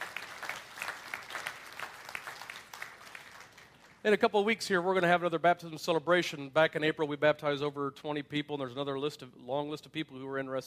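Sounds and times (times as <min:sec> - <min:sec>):
audience applause: 0:00.0 - 0:04.0
speech: 0:04.0 - 0:10.6.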